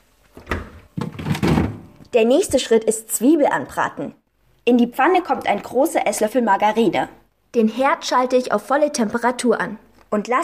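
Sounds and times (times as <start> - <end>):
freezer door opening and closing: 0.3 - 2.0
speech: 2.1 - 10.4.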